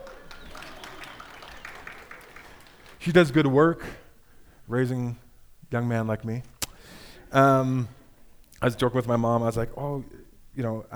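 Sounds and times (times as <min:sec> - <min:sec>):
audience applause: 0:00.0 - 0:03.4
speech: 0:03.0 - 0:04.0, 0:04.7 - 0:06.5, 0:07.3 - 0:08.0, 0:08.6 - 0:10.9.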